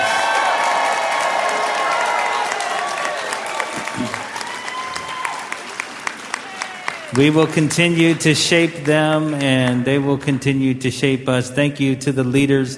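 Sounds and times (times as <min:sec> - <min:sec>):
convention audience clapping and cheering for the NFB Training Center: 0:00.0 - 0:10.2
speech: 0:07.2 - 0:12.7.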